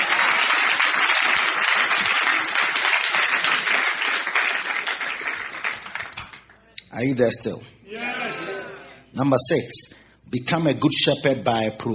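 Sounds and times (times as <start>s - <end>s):
church congregation applauding during a sermon: 0.0s - 6.6s
speech: 7.0s - 8.4s, 9.2s - 11.9s.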